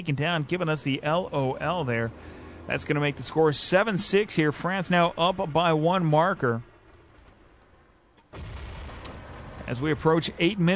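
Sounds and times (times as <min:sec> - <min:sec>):
speech: 0:00.0 - 0:06.7, 0:09.7 - 0:10.7
video game grenade explosions in a back hallway: 0:08.3 - 0:10.7.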